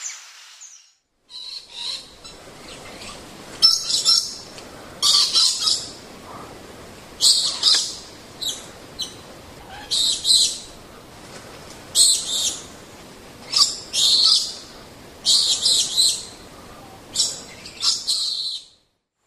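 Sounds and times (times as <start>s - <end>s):
lorikeet screeching: 1.3s - 6.5s, 7.2s - 10.8s, 13.4s - 18.7s.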